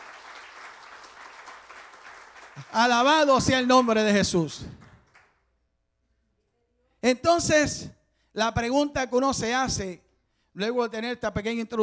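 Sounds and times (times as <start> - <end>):
congregation clapping during a church service: 0.0 - 5.5
speech: 2.6 - 4.8, 7.1 - 10.0, 10.6 - 11.8.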